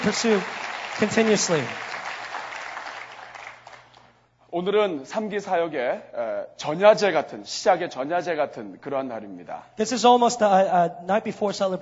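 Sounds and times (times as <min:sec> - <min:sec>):
speech: 0:00.0 - 0:01.9, 0:04.6 - 0:11.8
applause: 0:00.0 - 0:04.1.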